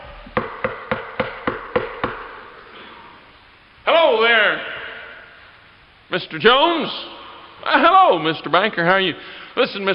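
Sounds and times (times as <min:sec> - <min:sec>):
steady hiss: 0:00.0 - 0:09.9
knocking on a door: 0:00.2 - 0:02.3
speech: 0:06.1 - 0:09.9.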